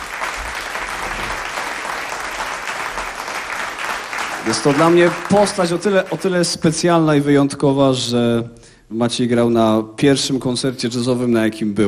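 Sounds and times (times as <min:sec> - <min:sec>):
audience applause: 0:00.0 - 0:06.4
speech: 0:04.4 - 0:11.8.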